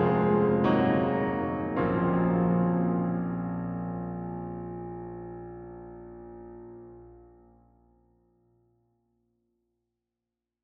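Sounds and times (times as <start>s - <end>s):
dark piano music: 0.0s - 7.6s.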